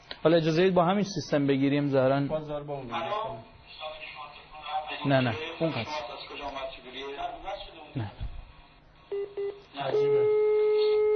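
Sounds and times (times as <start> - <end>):
speech: 0.2 - 3.9, 5.0 - 6.2
long steady telephone tone: 9.1 - 11.1
telephone touch-tone dialing beeps: 9.1 - 11.1.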